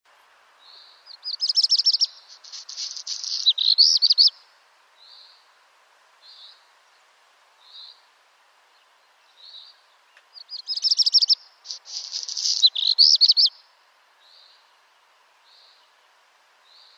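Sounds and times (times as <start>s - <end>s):
Black redstart rattling crackling song: 0.6s - 4.4s, 6.2s - 14.8s.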